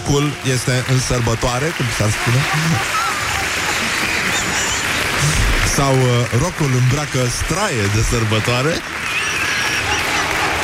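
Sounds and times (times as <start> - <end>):
steady applause from a crowd: 0.0 - 10.6
speech: 0.1 - 3.1, 5.2 - 9.0
laughter: 2.2 - 5.7, 8.9 - 10.6.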